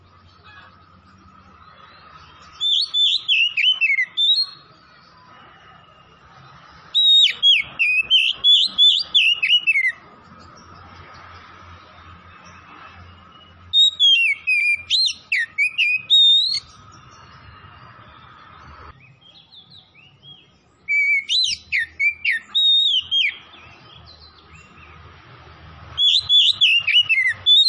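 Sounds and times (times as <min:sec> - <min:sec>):
Oriental magpie-robin singing whistles: 0:02.2 - 0:04.7, 0:06.9 - 0:10.0, 0:12.4 - 0:17.9, 0:20.1 - 0:23.8, 0:26.0 - 0:27.6.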